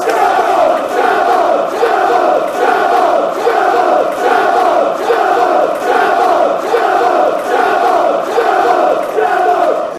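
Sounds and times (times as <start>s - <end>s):
fans chanting: 0.0s - 9.9s.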